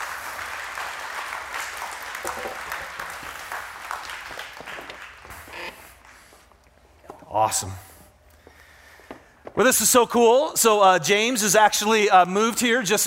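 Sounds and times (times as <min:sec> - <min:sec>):
audience applauding to welcome two guests onto a stage: 0:00.0 - 0:05.4
speech: 0:07.4 - 0:07.9, 0:09.6 - 0:13.0.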